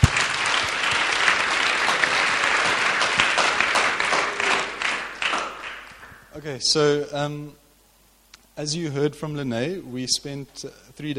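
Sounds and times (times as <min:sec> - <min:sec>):
audience applause: 0:00.0 - 0:06.3
speech: 0:06.4 - 0:07.6, 0:08.6 - 0:11.1.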